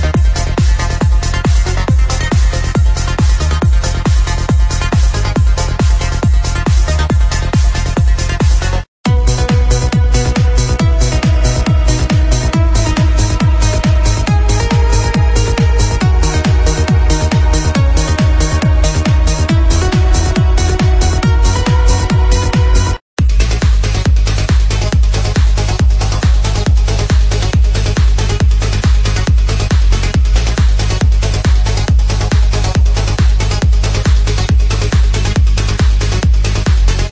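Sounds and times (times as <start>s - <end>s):
uplifting trance music: 0.0s - 37.1s.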